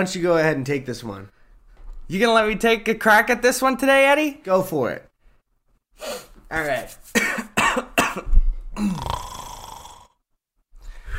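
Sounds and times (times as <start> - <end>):
speech: 0.0 - 1.4, 2.1 - 5.1, 6.0 - 7.2, 8.2 - 9.3
cartoon-style snore made by a voice: 8.8 - 10.2.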